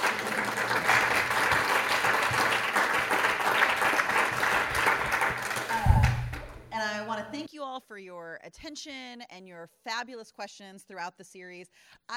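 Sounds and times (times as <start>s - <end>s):
audience applause: 0.0s - 6.6s
speech: 7.9s - 12.1s.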